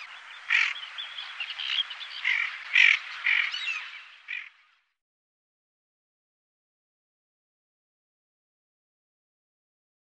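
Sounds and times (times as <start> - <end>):
tufted ducks: 0.0 - 4.6.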